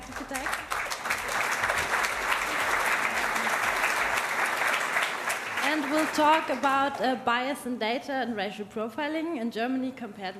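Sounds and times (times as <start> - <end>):
audience applause: 0.0 - 6.9
speech: 5.8 - 10.3.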